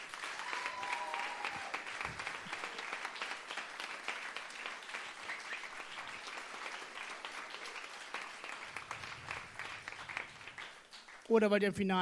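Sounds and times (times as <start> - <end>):
crowd applauding at a poetry slam vote: 0.0 - 11.3
faint cheering: 0.2 - 3.0
speech: 11.3 - 11.9.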